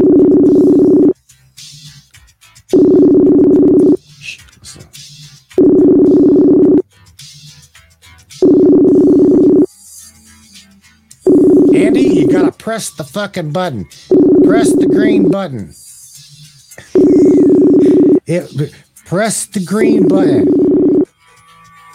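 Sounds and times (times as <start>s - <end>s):
phone ringback tones: 0.0s - 1.2s, 2.8s - 4.0s, 5.6s - 6.8s, 8.4s - 9.7s, 11.3s - 12.5s, 14.1s - 15.4s, 17.0s - 18.2s, 19.8s - 21.1s
speech: 11.8s - 15.8s, 18.3s - 20.6s.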